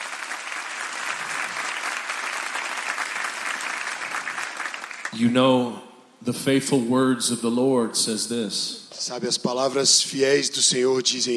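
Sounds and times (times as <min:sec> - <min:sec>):
audience applause: 0:00.0 - 0:05.1
speech: 0:05.1 - 0:11.3.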